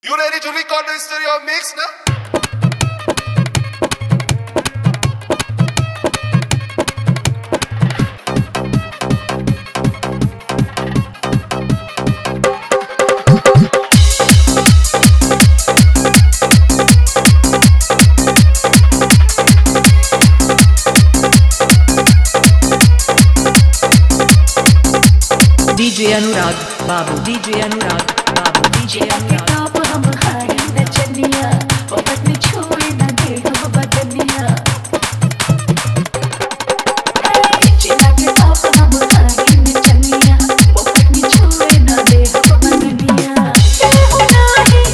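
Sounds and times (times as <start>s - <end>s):
dholki bass mix: 2.1s - 44.9s.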